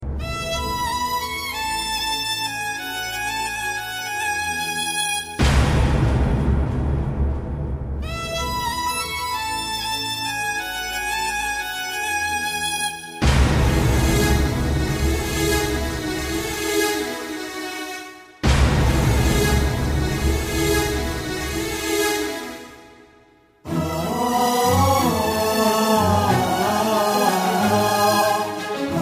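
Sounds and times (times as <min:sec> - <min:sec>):
Indian music: 0:00.0 - 0:07.2, 0:07.8 - 0:29.0.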